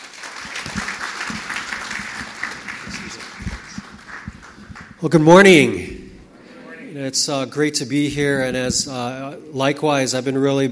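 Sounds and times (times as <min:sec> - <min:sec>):
church congregation applauding a guest pastor: 0:00.0 - 0:05.0
speech: 0:05.0 - 0:05.9, 0:07.0 - 0:10.7.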